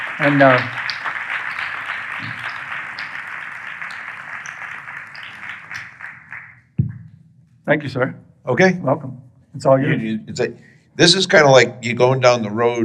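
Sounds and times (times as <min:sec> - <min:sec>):
audience applause welcoming a speaker to the stage: 0:00.0 - 0:06.6
speech: 0:00.2 - 0:00.8, 0:07.7 - 0:12.8.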